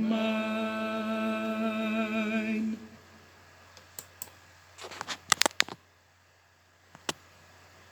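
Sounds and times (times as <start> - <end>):
tenor singing: 0.0 - 3.2.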